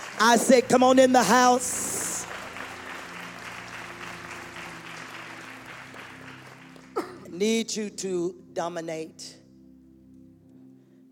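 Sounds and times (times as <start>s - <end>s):
audience clapping: 0.0s - 7.4s
speech: 0.2s - 1.9s, 7.4s - 9.4s.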